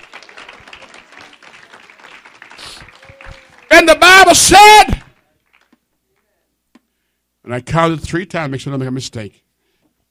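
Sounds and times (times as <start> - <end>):
audience clapping: 0.0 - 6.3
speech: 3.8 - 5.0, 7.5 - 9.4.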